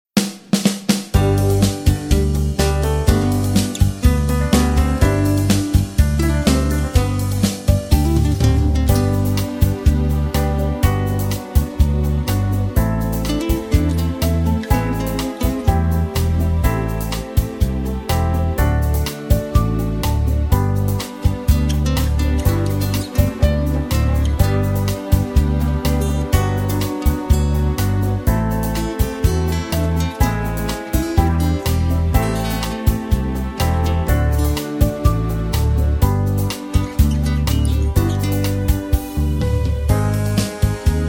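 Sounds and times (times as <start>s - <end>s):
song without backing vocals, key change: 0.2s - 41.0s.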